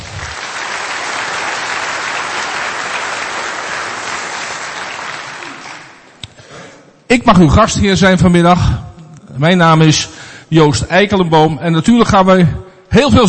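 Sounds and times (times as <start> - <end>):
audience applause: 0.0 - 6.2
speech: 7.1 - 13.2.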